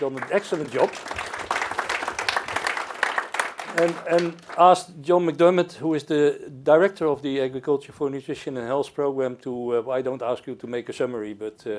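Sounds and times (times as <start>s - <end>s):
speech: 0.0s - 1.4s, 3.7s - 11.7s
audience applause: 0.0s - 4.8s.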